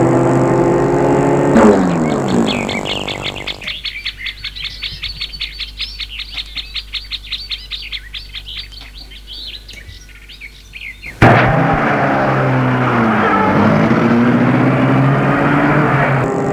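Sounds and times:
car driving: 0:00.0 - 0:03.8, 0:11.1 - 0:16.5.

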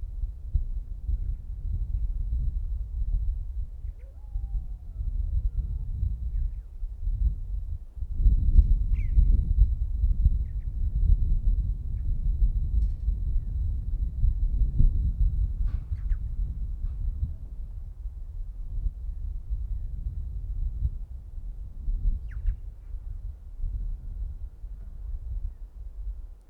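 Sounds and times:
wind over open Mongolian land: 0:00.0 - 0:26.3
faint thin whistles and chirps: 0:08.9 - 0:09.3, 0:15.8 - 0:16.3, 0:22.2 - 0:22.6.

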